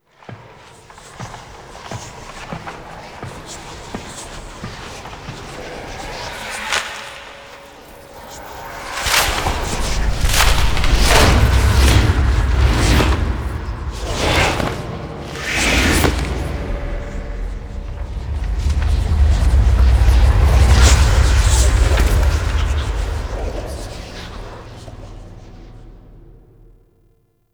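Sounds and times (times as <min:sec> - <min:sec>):
magical sound effect for missing grimoire page: 0:06.6 - 0:25.8.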